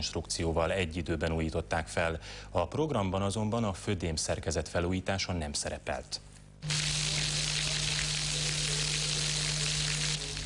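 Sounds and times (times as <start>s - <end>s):
speech: 0.0s - 6.9s
Danube water trickling from Batthyány tér HÉV terminus walls: 6.6s - 10.4s.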